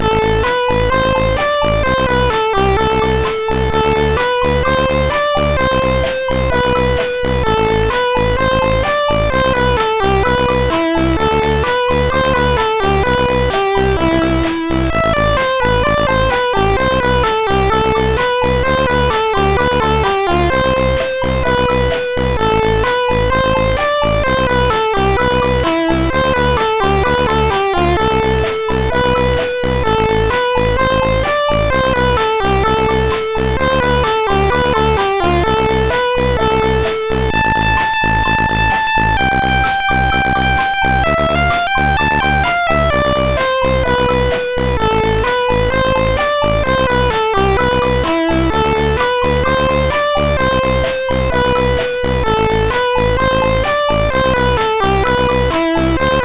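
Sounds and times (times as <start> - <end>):
emotional chiptune music on CSG8580R5 chip: 0.0 - 56.2.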